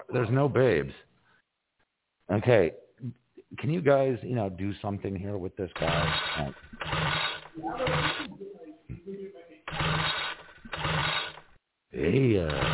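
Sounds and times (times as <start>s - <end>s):
speech: 0.0s - 1.1s, 2.3s - 8.4s, 12.0s - 12.7s
chainsaw engine sputtering and revving while struggling to start: 5.8s - 8.3s, 9.7s - 11.6s, 12.5s - 12.7s.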